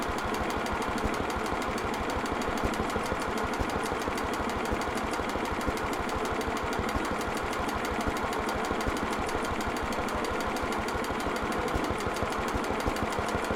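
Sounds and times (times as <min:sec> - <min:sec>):
1936 1.5hp engine operating: 0:00.0 - 0:13.5.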